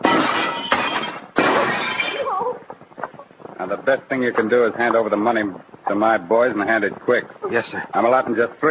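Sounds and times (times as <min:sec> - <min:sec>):
door being smashed in: 0:00.0 - 0:02.3
speech: 0:03.7 - 0:08.6.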